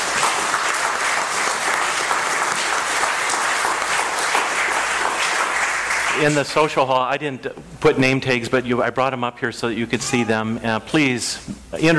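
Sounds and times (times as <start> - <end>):
round of applause for new members: 0.0 - 6.7
speech: 6.2 - 11.9.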